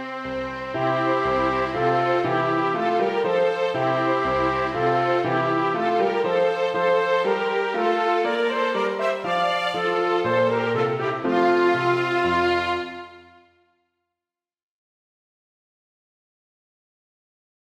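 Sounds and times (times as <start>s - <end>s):
minuet for trumpet, two violins and piano: 0.0s - 13.7s.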